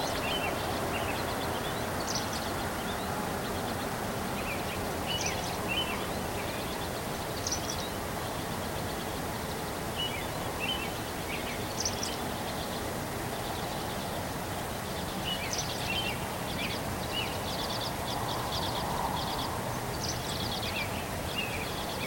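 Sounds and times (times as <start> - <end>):
bird song: 0.0 - 22.0.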